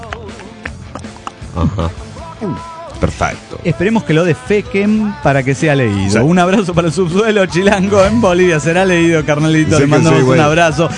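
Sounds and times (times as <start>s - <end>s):
person imitating seals chewing: 0.0s - 3.0s
speech: 1.6s - 10.9s.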